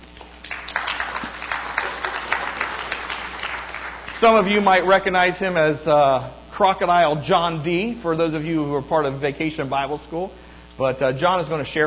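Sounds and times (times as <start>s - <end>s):
audience applause welcoming a guest speaker at a morning gathering: 0.2s - 4.6s
speech: 4.2s - 11.8s.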